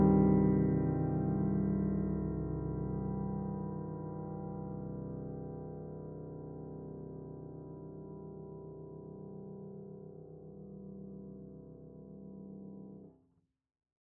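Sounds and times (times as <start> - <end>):
loud Steinway D grand piano with open lid: 0.0 - 9.6.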